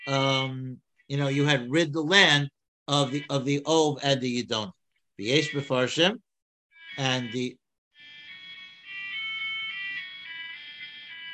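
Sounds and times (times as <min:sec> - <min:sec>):
mobile phone ringing with a bright electronic ringtone: 0:00.0 - 0:00.5, 0:02.9 - 0:03.4, 0:06.7 - 0:11.3
speech: 0:00.1 - 0:06.2, 0:07.0 - 0:07.6.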